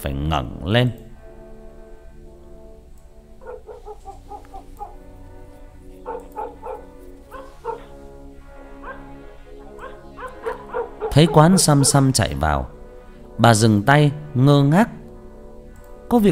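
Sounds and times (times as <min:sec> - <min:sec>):
speech: 0:00.0 - 0:01.0, 0:11.2 - 0:12.8, 0:13.4 - 0:15.0, 0:16.1 - 0:16.3
dog growling and barking: 0:03.4 - 0:05.1, 0:06.0 - 0:08.0, 0:08.8 - 0:12.1.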